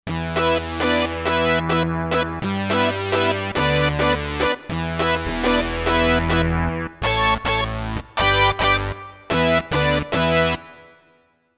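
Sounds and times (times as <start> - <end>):
house music: 0.1 - 10.8
synth brass: 0.1 - 11.1.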